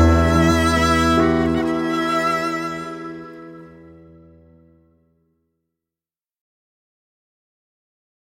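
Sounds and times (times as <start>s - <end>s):
song: 0.0s - 4.2s.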